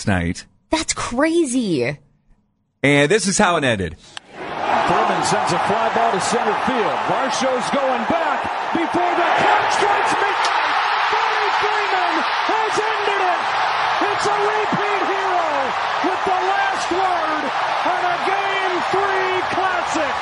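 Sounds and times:
speech: 0.0s - 2.0s, 2.8s - 4.2s, 5.2s - 10.5s, 12.5s - 20.1s
huge baseball stadium crowd roaring: 4.2s - 20.1s.

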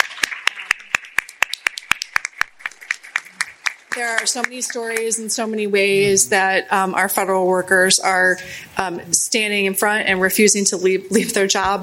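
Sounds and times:
audience applause: 0.0s - 5.1s
speech: 4.0s - 11.8s.

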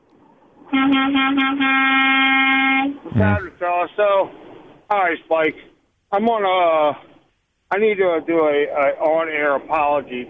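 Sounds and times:
truck horn honking: 0.7s - 3.3s
speech: 0.8s - 7.1s, 7.7s - 10.2s.

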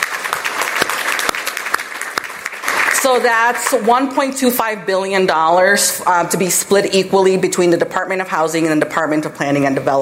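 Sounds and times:
audience applause: 0.0s - 3.7s
speech: 3.0s - 10.0s.

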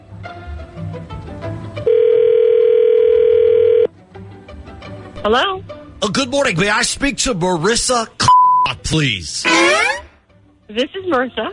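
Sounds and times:
telephone dial tone: 1.9s - 3.9s
speech: 5.2s - 8.2s, 8.9s - 9.9s, 10.7s - 11.5s.

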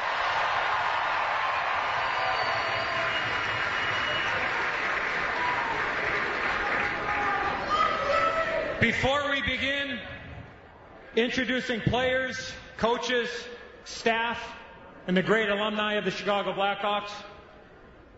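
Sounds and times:
audience applause: 0.0s - 8.0s
speech: 8.8s - 10.1s, 11.2s - 17.3s.

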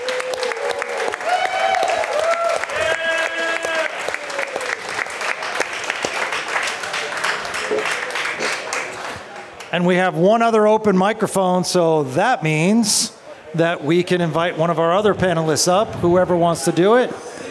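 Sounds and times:
audience applause: 0.0s - 9.7s
speech: 9.8s - 17.2s.

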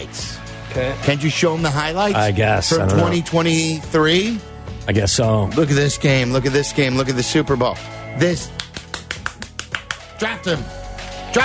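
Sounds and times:
speech: 0.0s - 8.6s, 10.2s - 11.4s
fast hand clapping: 8.4s - 10.3s.

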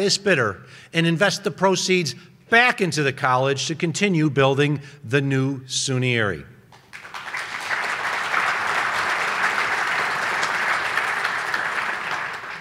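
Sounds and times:
speech: 0.0s - 6.6s
audience applause: 6.8s - 12.5s.

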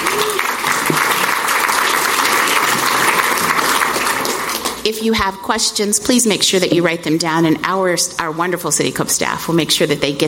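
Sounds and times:
round of applause: 0.0s - 4.8s
speech: 4.9s - 10.2s.

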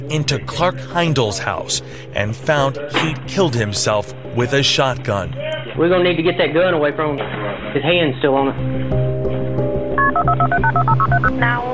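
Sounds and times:
speech: 0.0s - 9.1s, 10.5s - 11.7s
telephone keypad touch-tone beeps dialing 911: 10.0s - 11.6s.

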